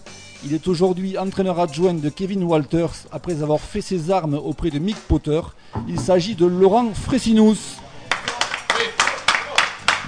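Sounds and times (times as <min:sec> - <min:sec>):
speech: 0:00.4 - 0:07.8
studio audience clapping on a rugby league television programme: 0:08.1 - 0:10.0.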